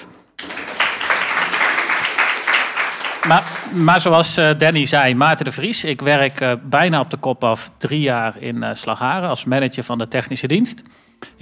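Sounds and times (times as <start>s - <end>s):
audience applause: 0.0s - 4.3s
speech: 3.2s - 11.4s.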